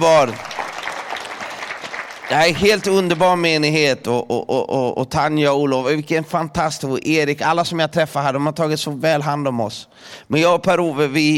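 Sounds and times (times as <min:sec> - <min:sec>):
speech: 0:00.0 - 0:00.6, 0:02.3 - 0:11.3
audience applause: 0:00.0 - 0:03.2.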